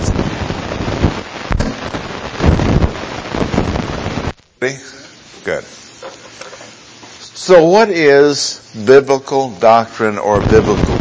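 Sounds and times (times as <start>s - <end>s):
deep rolling thunder: 0.0s - 4.3s
speech: 4.6s - 6.6s, 7.4s - 10.9s.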